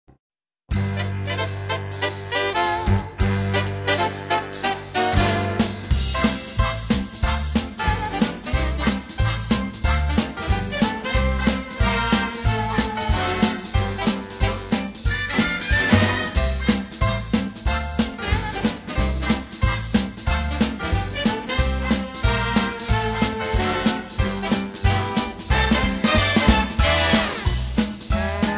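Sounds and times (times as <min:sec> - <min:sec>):
big band: 0:00.7 - 0:28.5.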